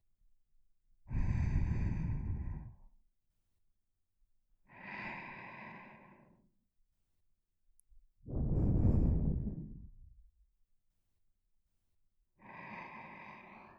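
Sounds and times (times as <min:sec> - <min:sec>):
person breathing in sleep: 0:01.1 - 0:02.9, 0:04.7 - 0:06.5, 0:08.3 - 0:10.1, 0:12.4 - 0:13.7.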